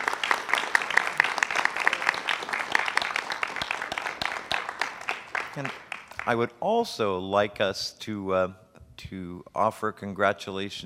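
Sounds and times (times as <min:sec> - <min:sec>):
audience applauding the Board of Publications candidates: 0:00.0 - 0:06.5
speech: 0:05.6 - 0:10.8.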